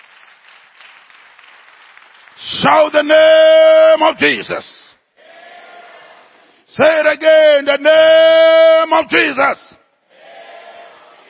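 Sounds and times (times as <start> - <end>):
audience hand clapping: 0.0 - 2.8
speech: 2.4 - 4.8, 6.8 - 9.8.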